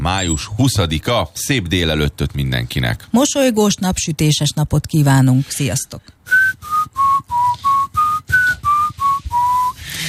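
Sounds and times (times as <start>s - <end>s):
speech: 0.1s - 6.7s
whistled phone alarm tone: 6.3s - 9.8s.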